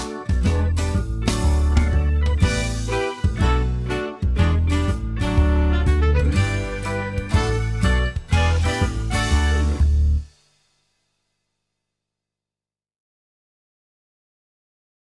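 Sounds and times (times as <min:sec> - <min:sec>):
backing track: 0:00.0 - 0:10.4.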